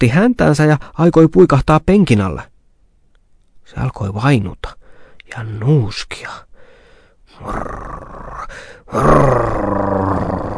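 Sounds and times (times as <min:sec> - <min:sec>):
speech: 0:00.0 - 0:02.5, 0:03.7 - 0:06.5, 0:07.3 - 0:10.2
dog growling: 0:07.4 - 0:10.5.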